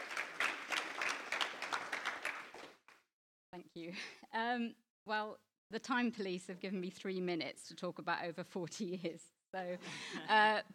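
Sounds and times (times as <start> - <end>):
audience applause: 0.0 - 2.8
speech: 3.8 - 10.7.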